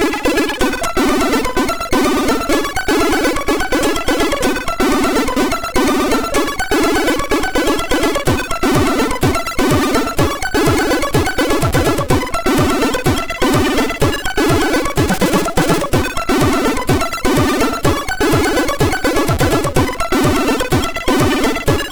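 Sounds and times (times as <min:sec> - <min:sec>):
Latin music on MOS6581R3 sound chip: 0:00.1 - 0:21.8.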